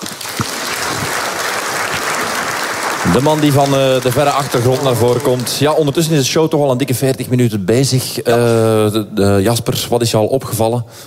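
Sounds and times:
audience applause: 0:00.0 - 0:06.3
speech: 0:03.0 - 0:11.0.

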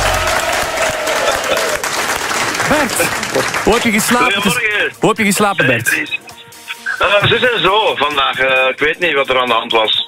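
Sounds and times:
audience applause: 0:00.0 - 0:04.6
speech: 0:02.7 - 0:06.3, 0:07.0 - 0:10.0.

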